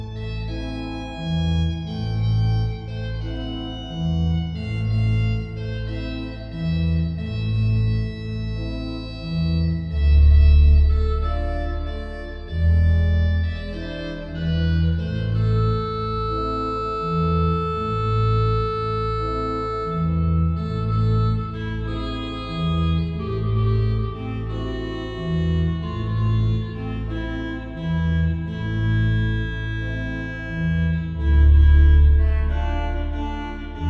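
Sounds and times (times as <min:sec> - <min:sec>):
organ playing a habanera in A minor: 0:00.2 - 0:33.8.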